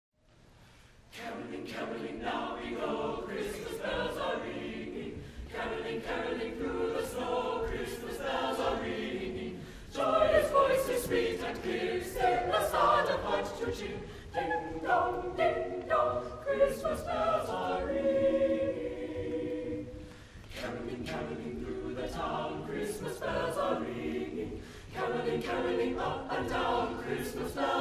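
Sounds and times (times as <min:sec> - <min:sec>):
people caroling: 0:01.2 - 0:27.7.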